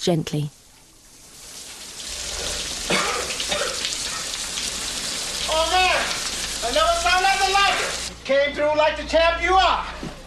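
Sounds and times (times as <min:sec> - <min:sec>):
speech: 0:00.0 - 0:00.6, 0:08.3 - 0:09.9
shower water running: 0:00.6 - 0:08.2.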